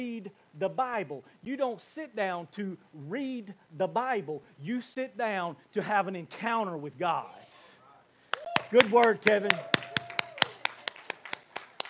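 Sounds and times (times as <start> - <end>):
speech: 0.0 - 7.4, 8.7 - 9.8
one person clapping alone: 8.3 - 11.8.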